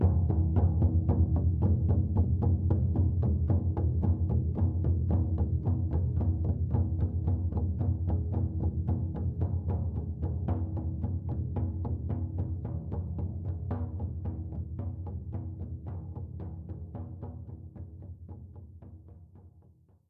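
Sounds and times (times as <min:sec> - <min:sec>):
shamanic music drum: 0:00.0 - 0:19.2.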